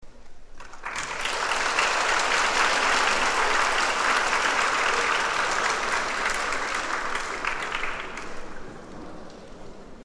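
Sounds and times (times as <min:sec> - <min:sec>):
hand clap: 0:00.6 - 0:08.6.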